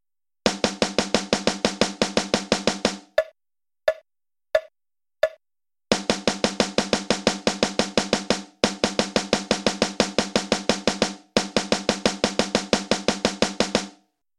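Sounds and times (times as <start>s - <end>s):
snare drums: 0.5s - 3.1s, 5.9s - 14.1s.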